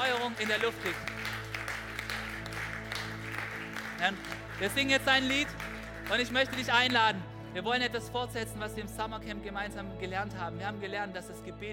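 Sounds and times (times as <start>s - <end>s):
speech: 0.0s - 1.4s, 4.0s - 11.7s
audience applause: 0.0s - 7.0s.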